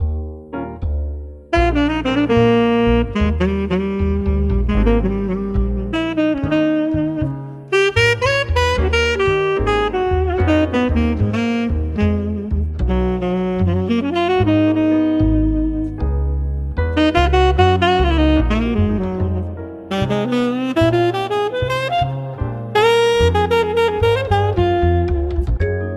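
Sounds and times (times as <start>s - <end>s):
classical jazz cafe music: 0.0s - 25.9s.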